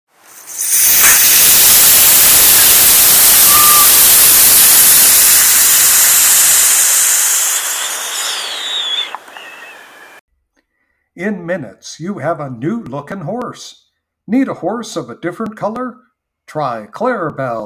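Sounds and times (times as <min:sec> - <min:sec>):
hosing off with water: 0:00.1 - 0:10.2
speech: 0:11.2 - 0:17.6.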